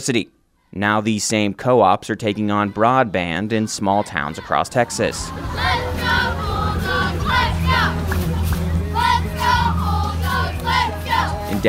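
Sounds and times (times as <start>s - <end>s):
speech: 0.0s - 6.4s
students cheering at a homecoming parade: 4.0s - 11.4s.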